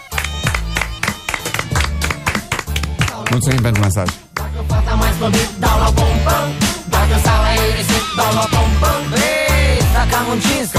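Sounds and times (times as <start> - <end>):
applause: 0.0 - 4.5
speech: 3.3 - 9.3, 10.0 - 10.7.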